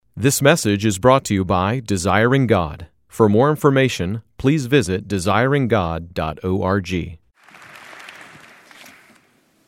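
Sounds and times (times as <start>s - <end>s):
speech: 0.2s - 7.2s
audience clapping: 7.4s - 9.6s.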